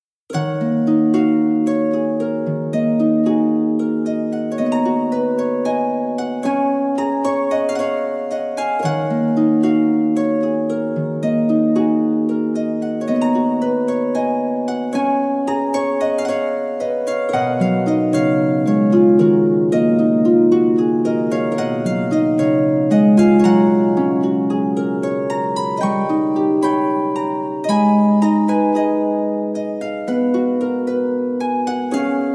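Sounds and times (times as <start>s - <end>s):
harp: 0.3s - 32.3s.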